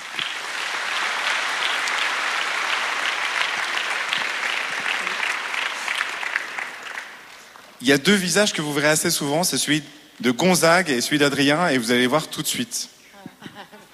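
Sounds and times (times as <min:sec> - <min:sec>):
audience applause: 0:00.0 - 0:07.7
speech: 0:07.8 - 0:13.0.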